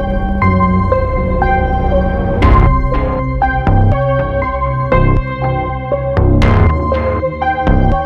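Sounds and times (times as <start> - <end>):
sci-fi atmospherics: 0.0 - 7.9.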